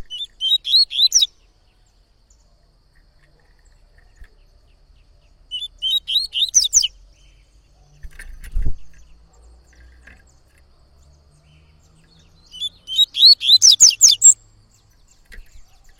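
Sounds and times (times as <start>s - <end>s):
yellow-bellied seedeater singing rising whistles: 0.1s - 1.3s, 5.6s - 6.9s, 12.5s - 14.4s.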